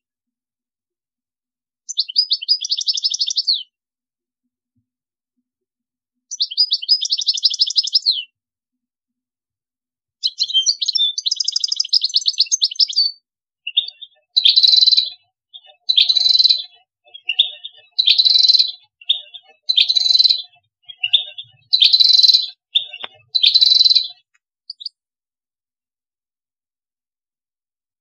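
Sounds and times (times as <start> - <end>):
European goldfinch singing: 1.9 - 3.7, 6.3 - 8.3, 10.2 - 25.0.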